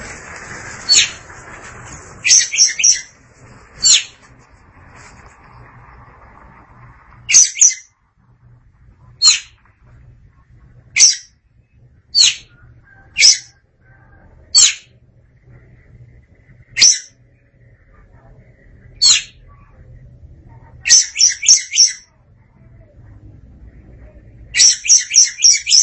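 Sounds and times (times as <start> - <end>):
faint low hum: 0.0 - 25.8
Oriental magpie-robin song: 0.9 - 1.2, 2.2 - 3.2, 3.8 - 4.2, 7.3 - 7.9, 9.2 - 9.6, 11.0 - 11.3, 12.2 - 12.5, 16.8 - 17.2, 19.0 - 19.4, 20.8 - 22.1, 24.6 - 25.8.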